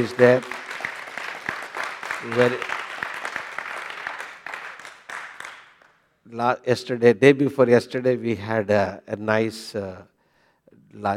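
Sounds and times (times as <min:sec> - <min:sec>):
speech: 0:00.0 - 0:00.6, 0:02.2 - 0:02.7, 0:06.4 - 0:10.1, 0:10.9 - 0:11.1
audience applause: 0:00.0 - 0:06.0.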